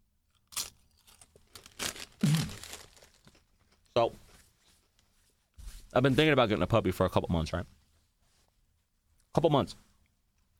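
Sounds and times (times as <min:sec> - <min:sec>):
chip bag crinkling: 0:00.5 - 0:03.6
speech: 0:04.0 - 0:04.2, 0:06.0 - 0:07.8, 0:09.4 - 0:09.9.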